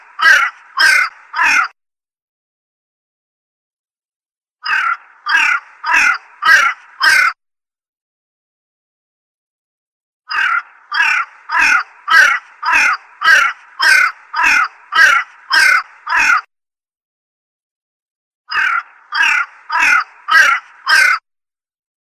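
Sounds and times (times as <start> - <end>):
crow calling: 0.0 - 1.8, 4.6 - 7.4, 10.3 - 16.5, 18.5 - 21.2.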